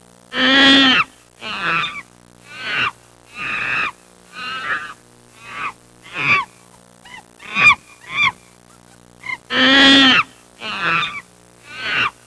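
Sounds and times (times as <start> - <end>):
various animal sounds: 0.3 - 12.2.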